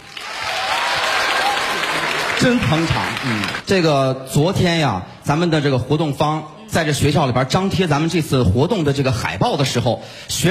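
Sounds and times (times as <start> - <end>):
audience applause: 0.0 - 3.6
speech: 2.4 - 10.4.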